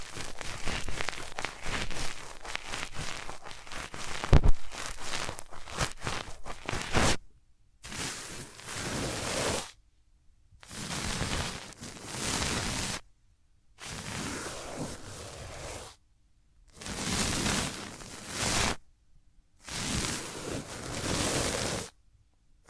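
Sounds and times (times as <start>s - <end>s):
hands rubbing over the ears: 0.0s - 7.2s, 7.9s - 9.7s, 10.6s - 13.0s, 13.8s - 16.0s, 16.8s - 18.8s, 19.7s - 21.9s.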